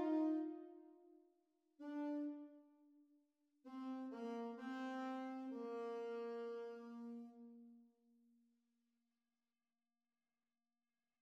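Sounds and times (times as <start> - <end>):
saxophone duet playalong: 0.0 - 0.7, 1.9 - 2.5, 3.7 - 7.7.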